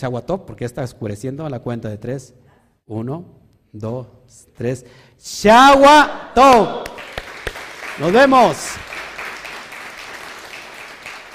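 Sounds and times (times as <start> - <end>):
speech: 0.0 - 7.1, 8.0 - 8.9
crowd applauding loudly: 6.8 - 11.3.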